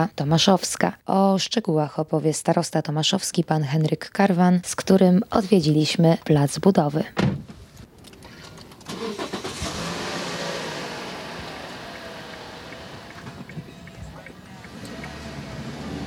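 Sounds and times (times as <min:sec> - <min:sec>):
speech: 0:00.0 - 0:07.4
busy street traffic, mostly trucks and delivery vans: 0:09.0 - 0:16.0.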